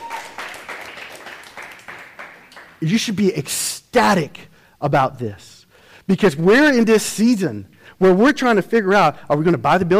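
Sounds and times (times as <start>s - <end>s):
crowd applause: 0.0s - 2.8s
speech: 2.8s - 9.9s.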